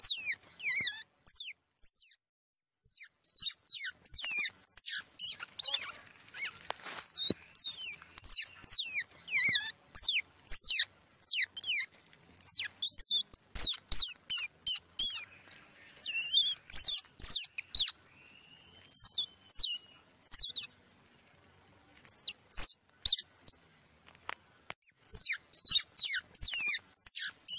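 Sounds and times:
squirrel pup squeaking: 0.0s - 2.2s, 2.8s - 18.1s, 18.8s - 20.8s, 22.0s - 23.6s, 24.8s - 27.5s.

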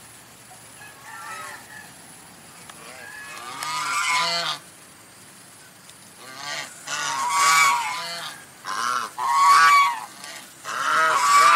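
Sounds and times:
domestic goose honking: 2.8s - 4.6s, 6.2s - 11.5s.

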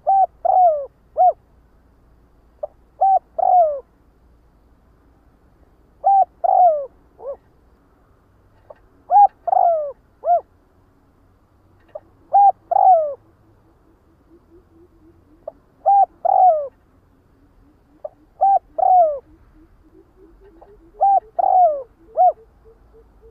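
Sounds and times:
spotted dove cooing: 0.0s - 1.4s, 2.6s - 3.9s, 6.0s - 7.5s, 8.7s - 10.5s, 11.8s - 23.2s.

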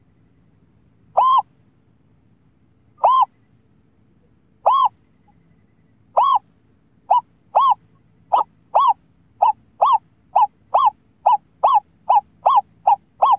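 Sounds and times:
scops owl hooting: 1.1s - 1.5s, 3.0s - 3.5s, 4.6s - 13.3s.

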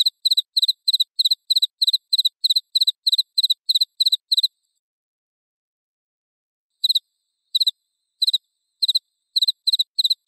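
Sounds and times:
cricket chirping: 0.0s - 4.7s, 6.8s - 10.2s.

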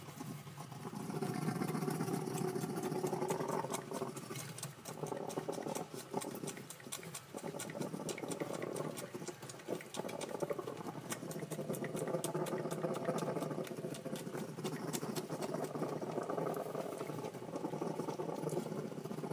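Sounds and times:
Bamboo rat mating call: 0.1s - 19.2s.

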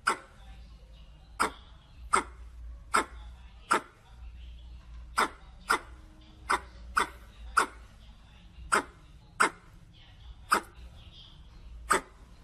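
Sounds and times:
red squirrel chuck calls: 1.3s - 4.0s, 5.2s - 7.9s, 8.7s - 9.7s.

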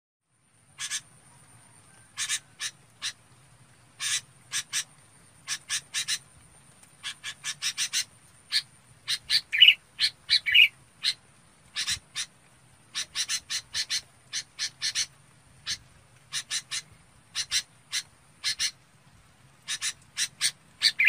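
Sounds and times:
red-whiskered bulbul chirping calls: 0.8s - 3.2s, 4.0s - 6.3s, 7.0s - 12.3s, 12.9s - 18.8s, 19.6s - 21.0s.

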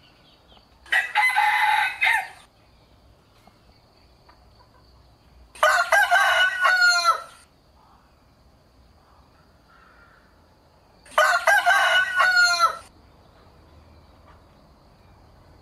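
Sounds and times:
rooster crowing: 0.9s - 2.5s, 5.6s - 7.4s, 11.1s - 12.9s.

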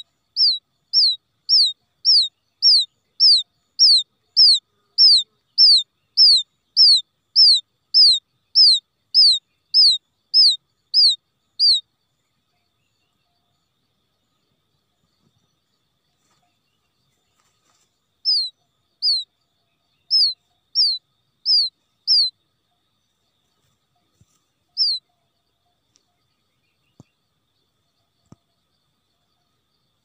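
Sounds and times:
quail chick peeping: 0.0s - 11.9s, 17.4s - 22.3s, 23.6s - 25.1s
faint click: 25.9s - 26.2s, 26.9s - 27.2s, 28.2s - 28.5s.

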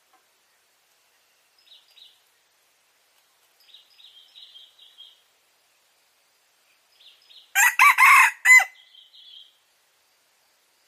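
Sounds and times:
red junglefowl crowing: 7.6s - 8.8s.

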